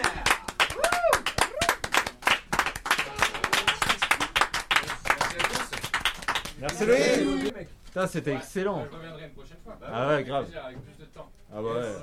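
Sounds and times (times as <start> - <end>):
audience clapping to welcome a guest onto a show: 0.0 - 7.5
speech: 6.6 - 12.0.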